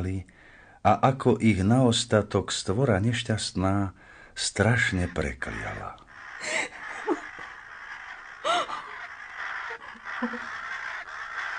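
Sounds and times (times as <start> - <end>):
speech: 0.0 - 6.8, 10.2 - 10.6
ravens cawing: 4.0 - 11.5.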